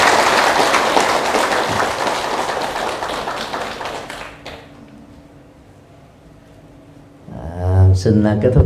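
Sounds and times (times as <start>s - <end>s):
audience applause: 0.0s - 4.7s
speech: 8.0s - 8.6s.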